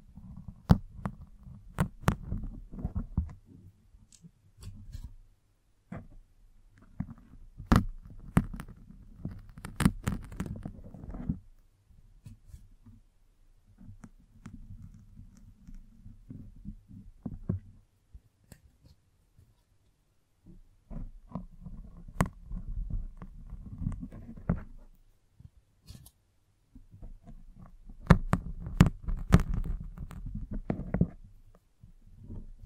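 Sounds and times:
brushing and scratching against a microphone: 0.0s - 3.5s, 6.8s - 11.5s, 13.7s - 17.8s, 20.9s - 25.0s, 27.0s - 31.4s.

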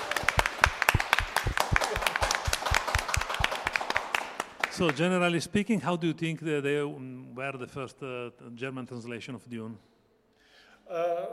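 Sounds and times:
small audience applauding: 0.0s - 5.0s
speech: 4.8s - 9.9s, 10.9s - 11.3s.

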